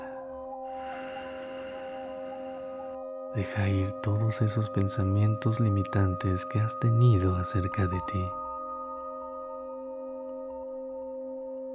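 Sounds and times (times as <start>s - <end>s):
slow breathy exhale during a guided meditation: 0.0s - 3.0s
soft steady musical drone: 0.0s - 11.7s
speech: 3.4s - 8.4s.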